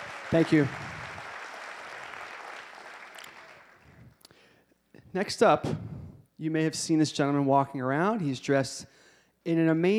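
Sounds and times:
audience applause: 0:00.0 - 0:04.1
speech: 0:00.3 - 0:00.8, 0:05.2 - 0:09.9.

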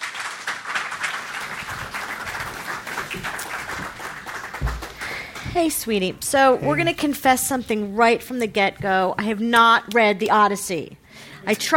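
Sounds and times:
audience at a JCC author event applauding: 0:00.0 - 0:05.6
speech: 0:05.5 - 0:11.7.

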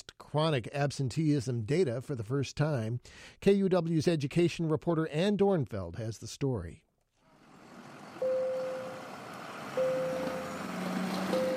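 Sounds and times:
speech: 0:00.3 - 0:06.8
morning bell ringing at George T. Daniel Elementary School in Kent: 0:08.2 - 0:11.5.

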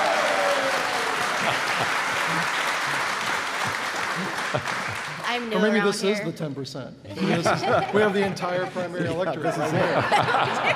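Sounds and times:
audience applause: 0:00.0 - 0:05.5
laughter: 0:01.2 - 0:05.2, 0:07.1 - 0:10.7
speech: 0:05.4 - 0:10.7.

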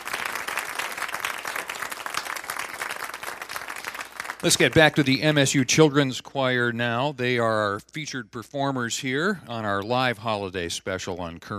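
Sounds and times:
audience applause: 0:00.0 - 0:05.1
speech: 0:04.4 - 0:11.5.

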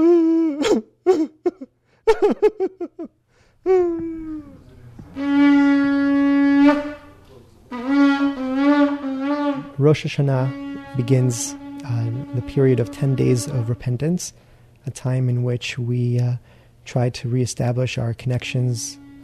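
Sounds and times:
voice imitating shofar calls: 0:00.0 - 0:00.9, 0:03.7 - 0:14.2, 0:18.2 - 0:19.2
speech: 0:00.8 - 0:02.5, 0:10.0 - 0:19.0.

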